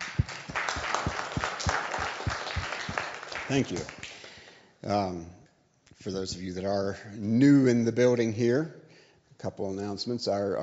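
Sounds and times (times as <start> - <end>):
church congregation applause welcoming visitors: 0.0 - 4.6
speech: 3.5 - 4.0, 4.8 - 5.4, 6.0 - 8.8, 9.4 - 10.6.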